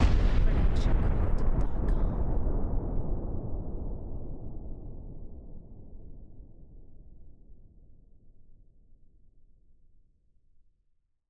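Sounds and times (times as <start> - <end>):
deep distant explosion: 0.0 - 7.1.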